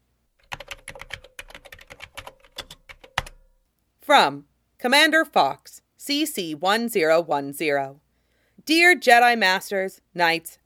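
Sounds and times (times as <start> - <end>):
typing on a computer keyboard: 0.4 - 3.5
speech: 4.1 - 8.0, 8.7 - 10.6.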